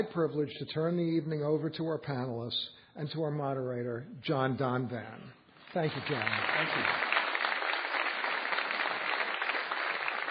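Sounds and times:
speech: 0:00.0 - 0:07.0
audience applause: 0:05.8 - 0:10.2.

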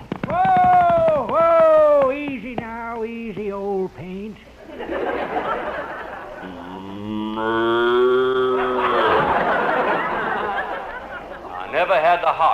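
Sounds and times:
voices: 0:00.3 - 0:12.5
laughter: 0:04.6 - 0:12.5
ridden cow mooing: 0:06.4 - 0:09.3.

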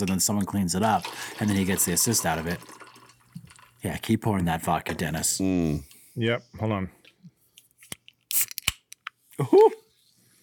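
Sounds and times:
speech: 0:00.0 - 0:02.8, 0:03.8 - 0:07.0, 0:09.4 - 0:09.8
drink can cracking open: 0:08.0 - 0:09.1.

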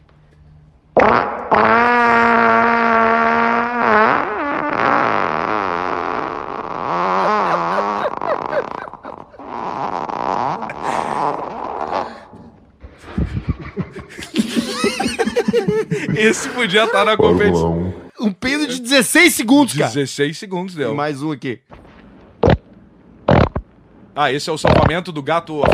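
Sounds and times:
speech: 0:01.0 - 0:01.9, 0:16.2 - 0:21.7, 0:24.2 - 0:25.7
long fart echoing in a porcelain bowl: 0:01.0 - 0:12.4, 0:21.7 - 0:23.7, 0:24.6 - 0:25.0
laughter: 0:07.0 - 0:09.6, 0:10.7 - 0:11.6, 0:13.0 - 0:18.0.

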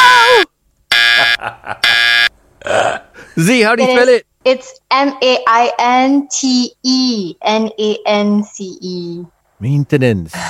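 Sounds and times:
harsh quiz-show buzzer: 0:00.9 - 0:02.3
speech: 0:01.4 - 0:01.8, 0:03.4 - 0:10.4.

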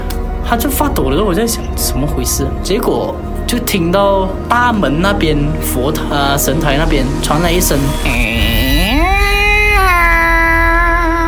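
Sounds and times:
speech: 0:00.5 - 0:08.4
bowed erhu playing: 0:07.6 - 0:11.2.

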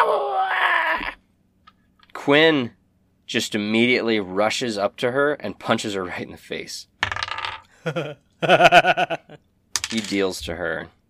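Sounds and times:
voice imitating a harpy's screech: 0:00.0 - 0:01.2
speech: 0:02.3 - 0:06.9, 0:07.8 - 0:11.0.

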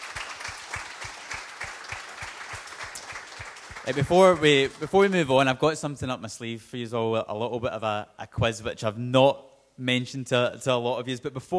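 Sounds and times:
audience applause: 0:00.0 - 0:05.3
speech: 0:03.9 - 0:11.5.

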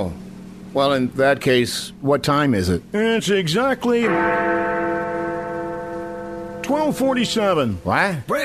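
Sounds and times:
speech: 0:00.0 - 0:04.8, 0:06.7 - 0:08.4
bell ringing on the hour: 0:03.8 - 0:08.0.

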